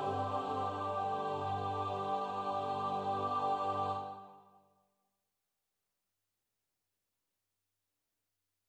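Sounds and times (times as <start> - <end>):
MIDI music: 0.0 - 4.3.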